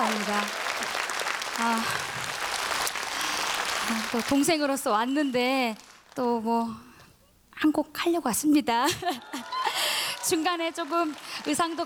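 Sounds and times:
audience applause: 0:00.0 - 0:04.6, 0:09.2 - 0:11.8
speech: 0:04.1 - 0:06.9, 0:07.6 - 0:09.5, 0:10.3 - 0:11.8.

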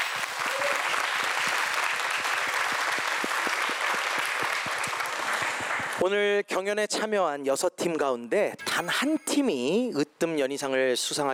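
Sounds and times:
audience applause: 0:00.0 - 0:06.0
speech: 0:06.0 - 0:11.3.

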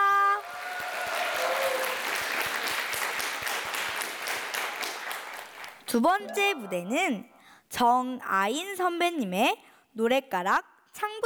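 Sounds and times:
large audience applause: 0:00.4 - 0:05.8
speech: 0:05.9 - 0:11.2
brief tonal sound: 0:06.2 - 0:07.4.

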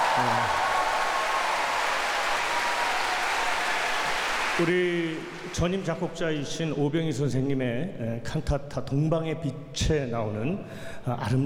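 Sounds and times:
audience applause: 0:00.0 - 0:06.2
speech: 0:00.2 - 0:00.6, 0:04.6 - 0:11.4.

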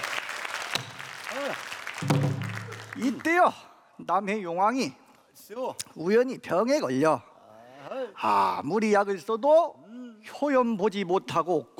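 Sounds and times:
audience applause: 0:00.0 - 0:03.4
speech: 0:03.0 - 0:07.3, 0:08.1 - 0:11.7.

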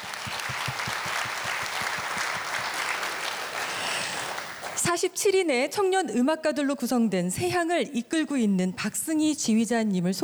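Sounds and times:
audience applause: 0:00.0 - 0:04.8
speech: 0:04.8 - 0:10.2.

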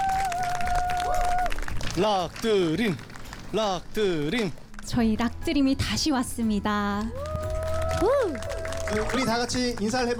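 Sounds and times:
audience applause: 0:00.0 - 0:03.9, 0:07.0 - 0:10.1
speech: 0:02.0 - 0:07.3, 0:08.0 - 0:10.1.

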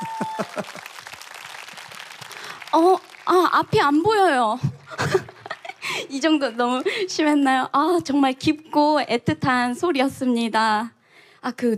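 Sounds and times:
audience applause: 0:00.0 - 0:04.0, 0:04.7 - 0:07.0
speech: 0:03.5 - 0:05.2, 0:06.1 - 0:11.7.

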